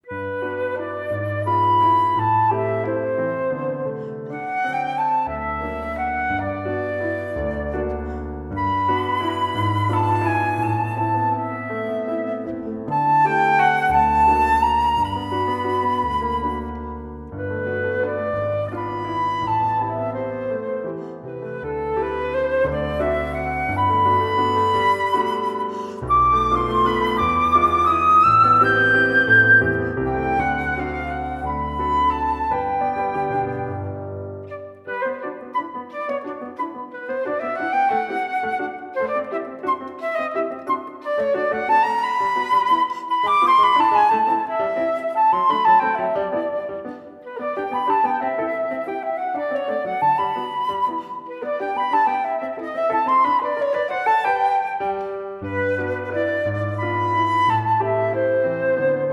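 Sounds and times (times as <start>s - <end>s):
waltz music: 0.0s - 59.1s.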